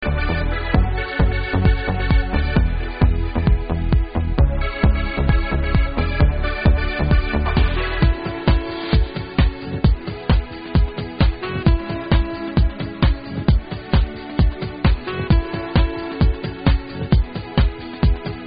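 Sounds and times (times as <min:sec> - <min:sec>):
saxophone: 0:00.0 - 0:18.4.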